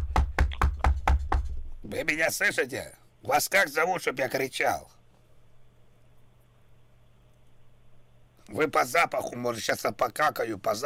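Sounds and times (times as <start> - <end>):
knocking: 0.0 - 1.7
speech: 1.9 - 5.0, 8.5 - 10.8.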